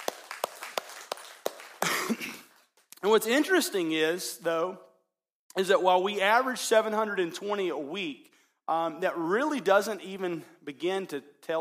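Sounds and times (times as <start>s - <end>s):
audience clapping: 0.0s - 3.0s
speech: 3.0s - 4.9s, 5.6s - 11.5s.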